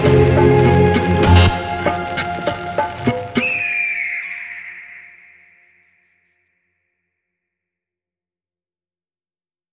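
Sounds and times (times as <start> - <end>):
music jingle: 0.0 - 4.1.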